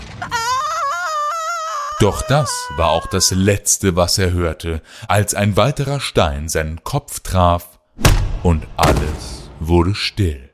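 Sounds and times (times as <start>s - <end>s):
loud scream from outside: 0.1s - 3.4s
speech: 2.0s - 10.5s.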